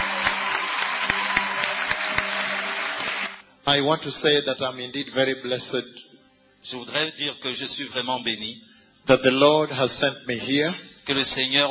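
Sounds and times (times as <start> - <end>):
audience clapping: 0.0 - 3.4
speech: 3.7 - 11.6.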